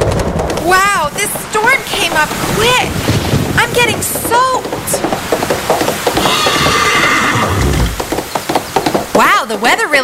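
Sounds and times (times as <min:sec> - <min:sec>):
hooves clopping: 0:00.0 - 0:10.0
speech: 0:00.7 - 0:05.6, 0:09.5 - 0:10.0
horse whinnying: 0:06.1 - 0:08.1.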